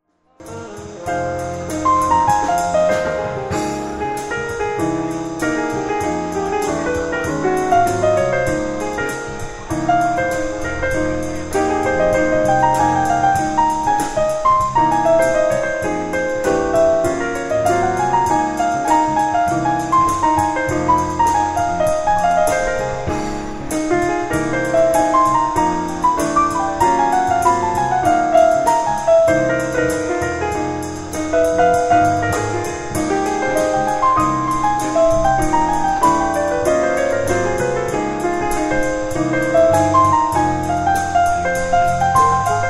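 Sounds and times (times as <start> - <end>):
piano: 0.0 - 42.6.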